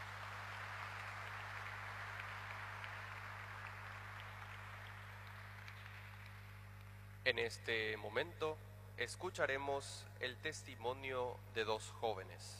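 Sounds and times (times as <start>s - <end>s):
audience clapping: 0.0s - 7.2s
low electrical hum: 0.0s - 12.5s
speech: 7.3s - 12.5s.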